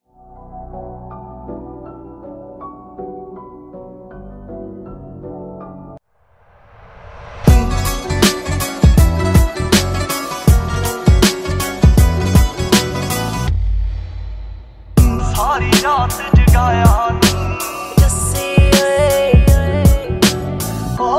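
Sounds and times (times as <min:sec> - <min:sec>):
Punjabi DJ song: 0:07.5 - 0:13.5, 0:15.0 - 0:21.0.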